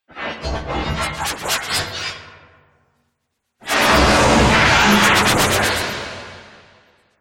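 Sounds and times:
sci-fi dubstep effects: 0:00.4 - 0:02.2, 0:03.6 - 0:06.4.

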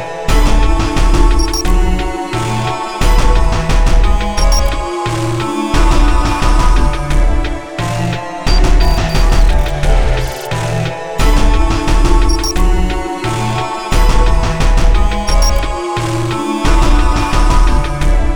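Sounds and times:
choir beat loop: 0:00.3 - 0:18.3
electrical glitch synth: 0:08.5 - 0:10.5.

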